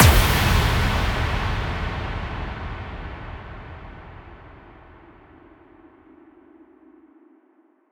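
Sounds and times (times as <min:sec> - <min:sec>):
effect kick drum hits: 0:00.0 - 0:04.5.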